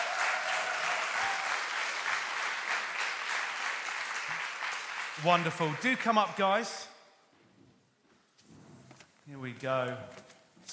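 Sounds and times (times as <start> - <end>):
audience applause welcoming speakers to the stage: 0.0 - 6.6
speech: 5.2 - 6.9, 9.3 - 10.7.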